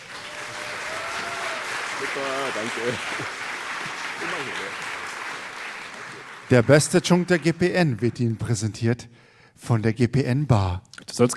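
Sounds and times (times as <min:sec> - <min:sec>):
crowd clapping: 0:00.0 - 0:08.8
speech: 0:02.0 - 0:03.4, 0:04.2 - 0:04.9, 0:06.5 - 0:11.3.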